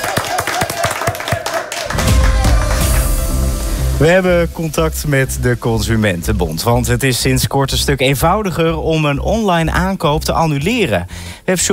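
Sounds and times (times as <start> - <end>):
applause: 0.0 - 3.4
speech: 4.0 - 11.7.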